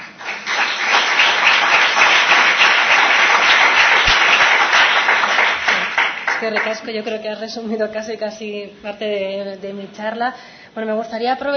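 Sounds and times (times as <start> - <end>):
audience applause: 0.0 - 6.8
speech: 6.4 - 11.5.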